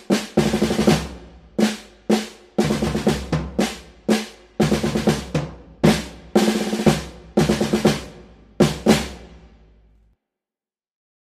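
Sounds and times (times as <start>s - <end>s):
snare drum march for welcoming ceremonies: 0.0s - 9.6s.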